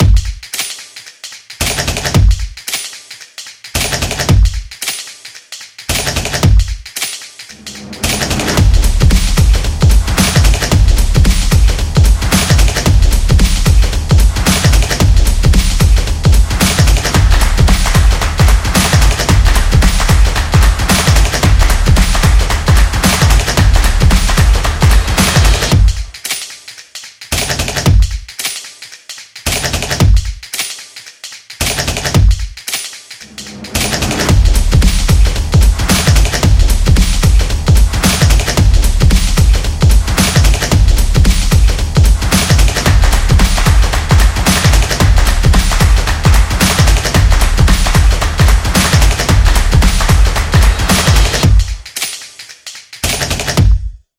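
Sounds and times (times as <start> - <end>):
modern beat: 0.0 - 54.0.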